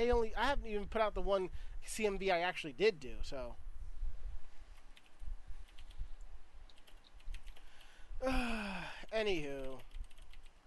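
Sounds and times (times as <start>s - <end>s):
speech: 0.0s - 3.6s, 8.2s - 9.9s
low steady hum: 0.0s - 10.6s
typing on a computer keyboard: 4.8s - 6.0s, 6.7s - 7.8s, 9.2s - 10.6s.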